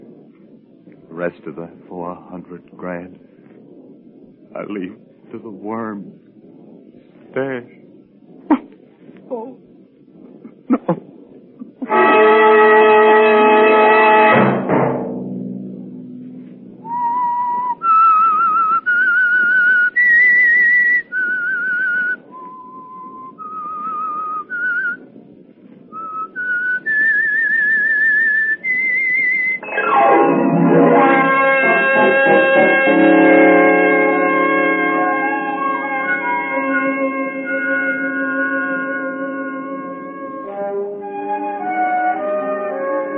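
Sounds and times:
speech: 1.2s - 3.4s, 4.6s - 6.2s, 7.3s - 7.8s
loud chord blast: 11.8s - 16.8s, 29.6s - 41.2s
whistled theme melody: 16.8s - 25.0s, 25.9s - 43.1s.

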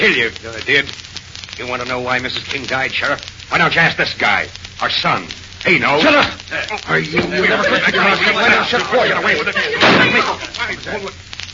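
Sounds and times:
speech: 0.0s - 1.0s, 1.6s - 11.3s
laughter: 6.5s - 10.9s
gunshot fired at the ceiling: 9.8s - 10.3s.

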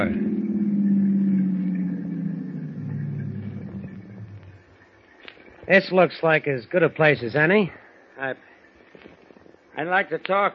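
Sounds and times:
speech: 0.0s - 0.4s, 5.7s - 8.5s, 9.8s - 10.5s
car pulling over: 0.0s - 4.8s.

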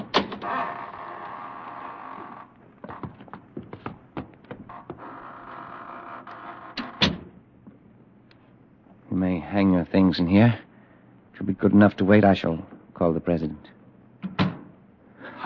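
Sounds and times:
heavy door creaking open with a grinding groan: 0.0s - 7.4s
speech: 9.5s - 10.6s, 11.4s - 13.8s
door thump: 14.2s - 14.7s.

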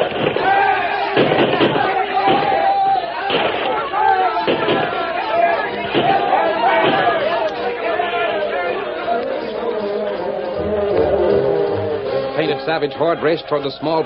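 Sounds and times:
volley of rifle gunfire in a Lone Ranger radio drama battle scene: 0.0s - 2.6s, 4.5s - 5.0s, 5.8s - 7.2s
crowd chatter and voices: 0.0s - 14.0s
speech: 12.7s - 14.0s.

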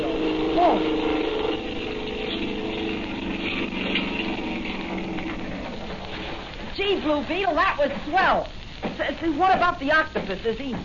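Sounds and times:
boat motor starting and running: 0.0s - 6.6s
speech: 7.0s - 10.8s.

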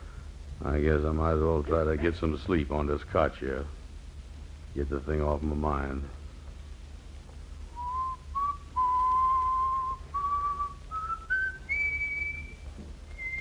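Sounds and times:
low hum: 0.0s - 13.3s
speech: 0.6s - 3.8s, 4.8s - 6.2s
person whistling a slow simple tune: 7.8s - 13.3s.

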